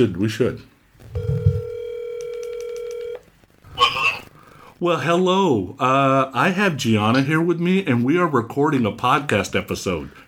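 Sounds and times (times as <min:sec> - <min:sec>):
speech: 0:00.0 - 0:01.3, 0:04.8 - 0:10.2
telephone dial tone while a call is placed: 0:01.1 - 0:03.2.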